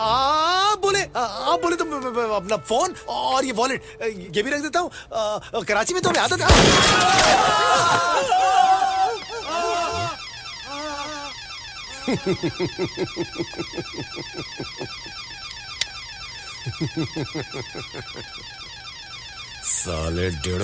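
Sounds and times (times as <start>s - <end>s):
alarm ringing: 0.8s - 4.7s, 5.9s - 20.6s
speech: 1.2s - 8.8s, 12.1s - 15.2s, 16.6s - 18.6s, 19.8s - 20.6s
raised voices shouting: 6.4s - 10.2s
laughter: 6.8s - 10.2s, 12.0s - 15.1s, 16.6s - 18.5s.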